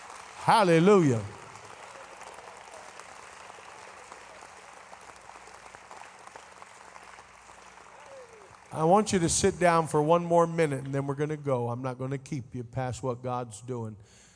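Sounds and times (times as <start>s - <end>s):
audience clapping hands: 0.0s - 11.0s
speech: 0.4s - 1.4s, 8.8s - 14.2s.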